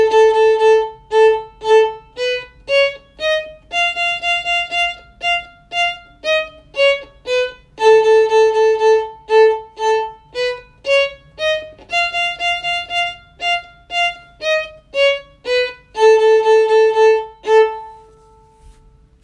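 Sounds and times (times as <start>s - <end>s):
short finger pattern warm up: 0.0s - 19.2s.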